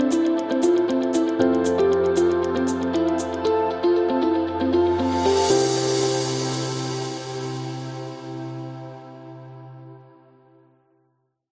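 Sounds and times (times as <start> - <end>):
upbeat medical music: 0.0 - 9.3.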